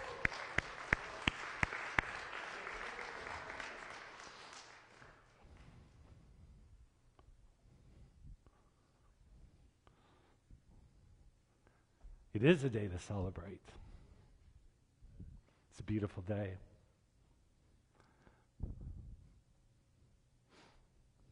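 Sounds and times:
people clapping hands: 0:00.0 - 0:05.8
speech: 0:12.4 - 0:13.9, 0:15.8 - 0:16.7.

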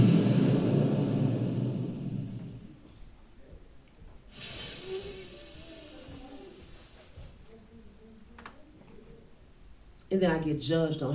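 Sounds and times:
hard blowing into a handheld device: 0:00.0 - 0:02.8, 0:04.3 - 0:07.3
soft hiss: 0:00.0 - 0:10.4
speech: 0:10.1 - 0:11.1.

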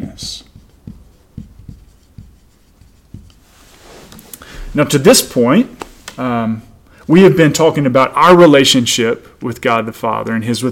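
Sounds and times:
writing scratching and tapping: 0:00.1 - 0:03.5
speech: 0:04.7 - 0:10.6.

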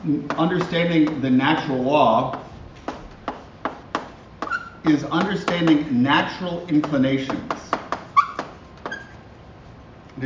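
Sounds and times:
speech: 0:00.0 - 0:02.4, 0:04.8 - 0:07.8
cat squeaking: 0:04.4 - 0:04.9, 0:08.1 - 0:09.2.

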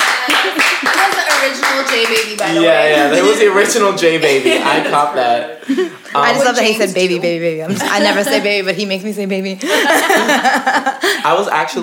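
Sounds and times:
applause: 0:00.0 - 0:02.7
speech: 0:02.0 - 0:11.8
laughter: 0:02.4 - 0:06.8, 0:07.6 - 0:08.8, 0:09.6 - 0:11.7.

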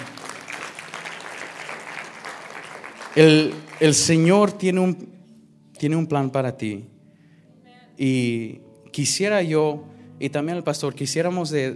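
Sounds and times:
loud audience applause: 0:00.0 - 0:04.4
speech: 0:03.2 - 0:05.1, 0:05.8 - 0:06.9, 0:08.0 - 0:11.7.

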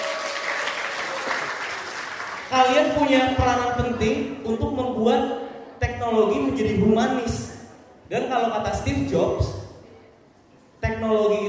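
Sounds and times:
audience applause: 0:00.0 - 0:02.5
speech: 0:02.5 - 0:05.4, 0:06.0 - 0:07.5, 0:08.1 - 0:09.6, 0:10.9 - 0:11.4.

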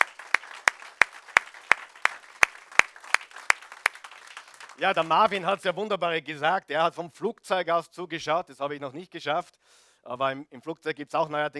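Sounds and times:
audience applause: 0:00.0 - 0:05.6
speech: 0:04.8 - 0:11.5.

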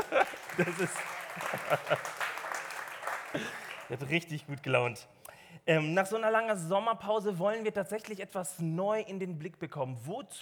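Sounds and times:
laughter: 0:00.0 - 0:04.2
audience applause: 0:00.0 - 0:04.3
speech: 0:00.6 - 0:02.2, 0:03.3 - 0:10.4.

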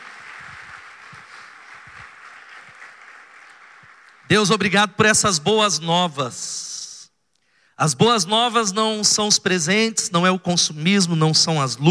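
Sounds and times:
audience applause: 0:00.0 - 0:04.3
speech: 0:04.3 - 0:06.6, 0:07.8 - 0:11.8.

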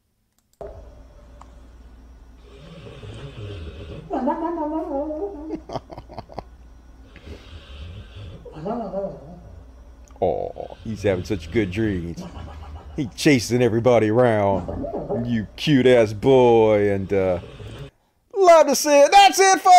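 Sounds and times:
dog snoring: 0:02.4 - 0:04.2, 0:07.0 - 0:13.4, 0:14.2 - 0:17.9
speech: 0:04.1 - 0:06.0, 0:08.6 - 0:09.3, 0:10.2 - 0:17.6, 0:18.6 - 0:19.7
laughter: 0:04.1 - 0:06.6, 0:12.1 - 0:13.6, 0:14.2 - 0:15.8.

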